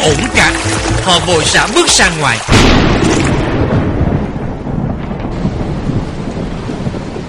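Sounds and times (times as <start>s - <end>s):
speech: 0.1s - 0.5s, 1.1s - 3.2s
rolling thunder in a rainstorm: 2.5s - 7.2s.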